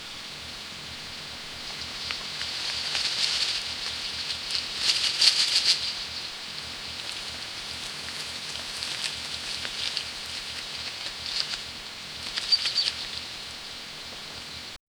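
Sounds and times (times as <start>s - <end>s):
light rustling of leaves in a forest: 0.0s - 14.8s.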